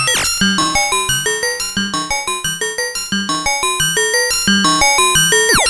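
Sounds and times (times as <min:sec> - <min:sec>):
long synth effect: 0:00.1 - 0:05.6.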